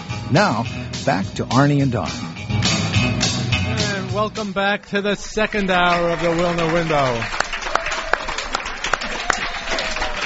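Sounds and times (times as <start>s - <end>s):
speech: 0.3s - 2.8s, 3.8s - 7.4s
audience applause at luncheon: 4.7s - 10.2s.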